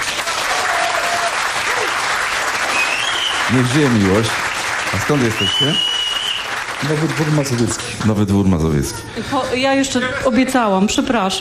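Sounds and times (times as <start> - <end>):
audience applause: 0.0 - 8.9
speech: 3.5 - 5.9, 6.8 - 11.3.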